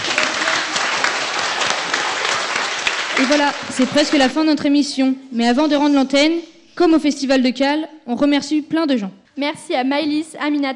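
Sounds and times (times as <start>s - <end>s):
audience applause: 0.0s - 4.3s
speech: 3.2s - 10.7s.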